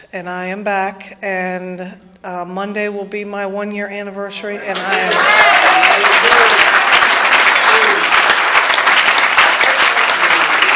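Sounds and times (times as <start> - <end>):
speech: 0.1 - 6.7
audience applause: 4.7 - 10.7.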